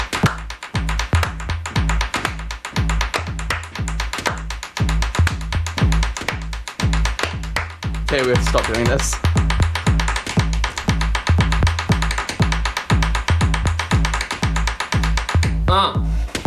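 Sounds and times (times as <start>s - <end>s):
pencil tapping percussion: 0.0s - 15.7s, 16.3s - 16.4s
speech: 8.2s - 9.5s, 15.7s - 16.0s.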